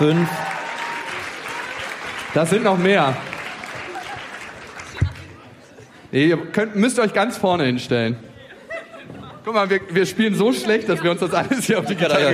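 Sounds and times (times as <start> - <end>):
speech: 0.0 - 0.5, 2.3 - 3.3, 6.1 - 8.3, 9.5 - 12.3
audience applause: 0.0 - 5.4
laughter: 3.7 - 4.8, 8.4 - 12.3.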